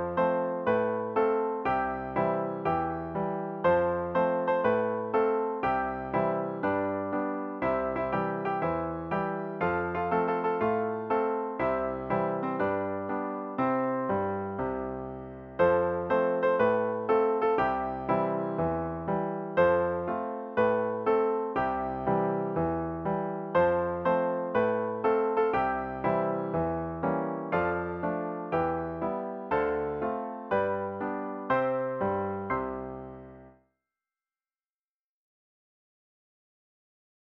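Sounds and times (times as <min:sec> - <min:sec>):
piano playing: 0:00.0 - 0:33.5.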